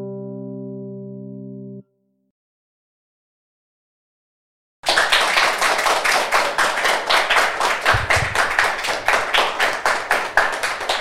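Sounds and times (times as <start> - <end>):
audience applause: 4.9 - 10.9.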